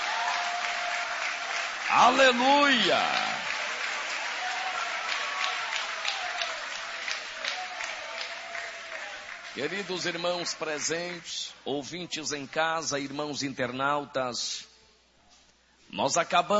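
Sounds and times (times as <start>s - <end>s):
crowd clapping: 0.0s - 11.4s
speech: 1.9s - 3.3s, 9.6s - 14.7s, 15.9s - 16.5s.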